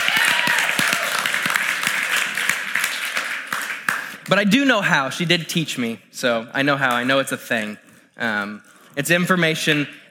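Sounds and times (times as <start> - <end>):
round of applause: 0.0 - 4.3
speech: 4.3 - 10.0.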